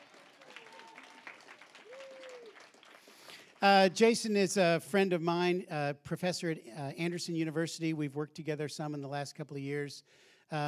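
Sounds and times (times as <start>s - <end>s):
audience clapping: 0.0s - 4.0s
speech: 3.6s - 10.6s.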